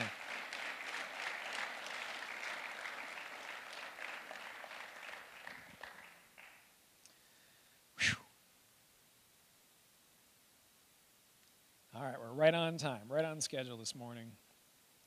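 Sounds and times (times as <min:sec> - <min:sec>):
audience clapping: 0:00.0 - 0:06.8
speech: 0:12.4 - 0:14.5.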